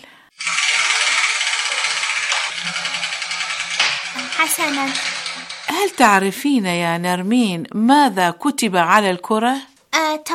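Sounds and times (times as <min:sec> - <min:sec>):
letter wheel spinning and rattling: 0:00.3 - 0:07.3
speech: 0:04.4 - 0:05.1, 0:05.7 - 0:10.3.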